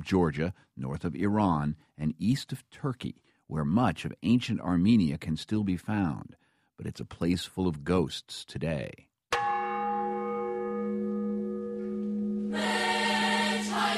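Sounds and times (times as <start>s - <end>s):
speech: 0.0s - 9.1s
church bell tolling at the Yerevan Armenian Genocide Memorial Ceremony: 9.3s - 13.8s.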